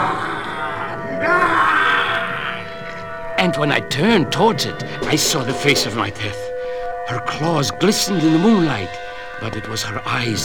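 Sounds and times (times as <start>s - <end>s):
wail neither human nor animal: 0.0s - 3.1s
fierce slavering growl: 0.0s - 10.4s
speech: 3.4s - 6.4s, 7.1s - 10.4s.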